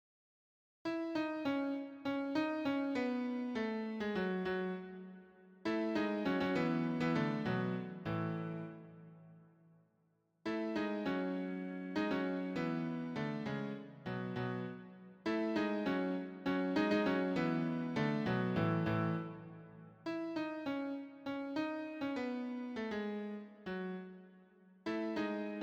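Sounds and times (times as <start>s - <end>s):
piano piece: 0.9s - 8.9s, 10.5s - 19.5s, 20.1s - 24.2s, 24.9s - 25.6s.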